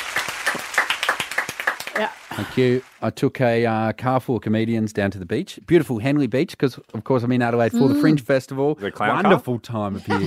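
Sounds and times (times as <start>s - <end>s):
applause: 0.0s - 3.0s
speech: 2.0s - 10.2s.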